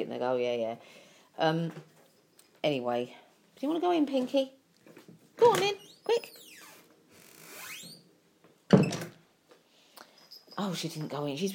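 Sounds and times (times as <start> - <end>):
speech: 0.0 - 1.9, 2.6 - 6.4, 10.6 - 11.5
door opening: 5.4 - 8.0, 8.7 - 9.2.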